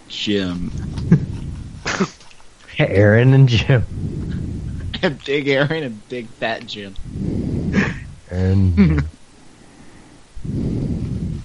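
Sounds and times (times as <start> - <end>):
speech: 0.1 - 0.8, 2.0 - 2.2, 2.8 - 4.2, 5.0 - 7.2, 8.3 - 9.2
heavy breathing: 0.7 - 2.3, 3.8 - 5.0, 7.0 - 8.7, 9.3 - 11.4.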